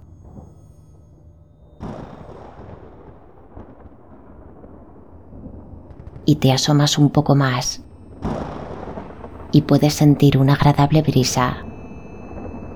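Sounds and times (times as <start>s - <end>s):
thunder rumbling in a summer storm: 2.4s - 12.7s
speech: 6.3s - 7.9s, 9.6s - 11.6s.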